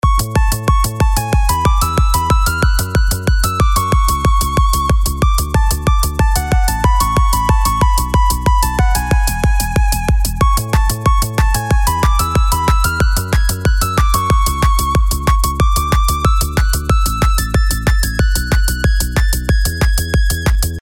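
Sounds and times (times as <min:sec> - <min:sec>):
tracker module melody: 0:00.0 - 0:20.6.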